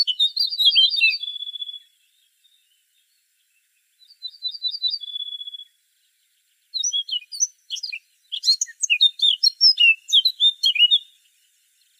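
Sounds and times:
Eurasian blackcap singing: 0.0s - 2.7s, 4.0s - 5.8s, 6.7s - 11.3s.

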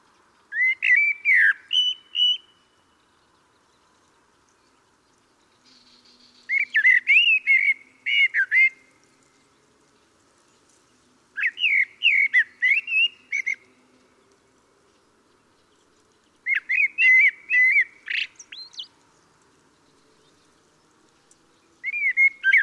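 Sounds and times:
common blackbird Turdus merula singing: 0.4s - 8.9s, 11.4s - 13.8s, 15.3s - 19.0s, 19.7s - 22.6s.

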